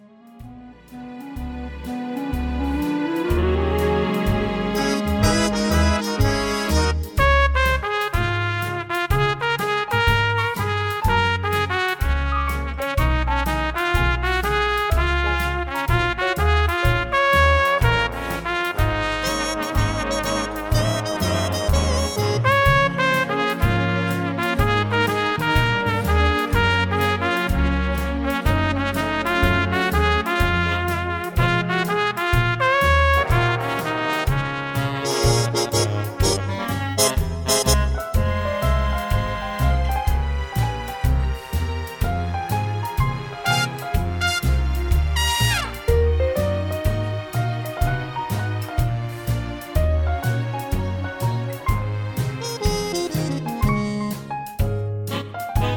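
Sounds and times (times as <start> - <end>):
instrumental music: 0.0 - 55.7.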